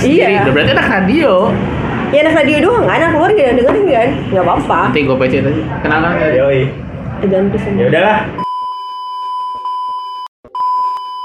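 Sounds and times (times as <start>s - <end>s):
speech: 0.0s - 8.4s
censor bleep: 8.4s - 11.2s.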